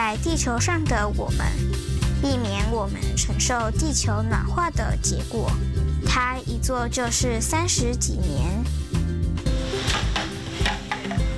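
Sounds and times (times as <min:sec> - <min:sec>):
speech: 0:00.1 - 0:08.8
bottles and cans dropped into basket: 0:09.6 - 0:11.3.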